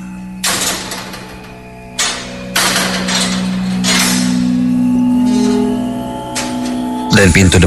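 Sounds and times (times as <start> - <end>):
metal gate being opened, clanking and grinding as it slides: 0.0 - 7.2.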